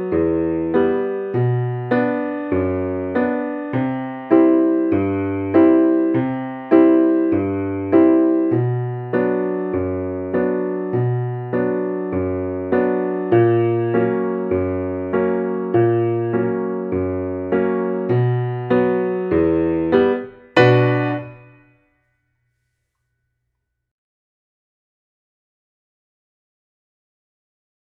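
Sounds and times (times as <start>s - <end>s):
Slavic song: 0.2s - 21.6s.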